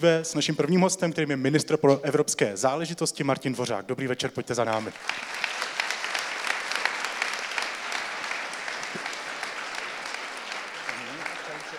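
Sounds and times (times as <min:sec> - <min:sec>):
speech: 0:00.0 - 0:05.5
audience applause: 0:04.8 - 0:11.7.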